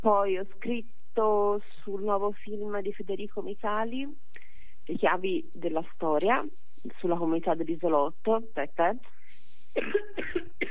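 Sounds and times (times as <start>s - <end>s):
speech: 0.0s - 9.2s, 9.8s - 10.6s
short rough cough from someone suffering badly from a cough: 9.8s - 10.6s.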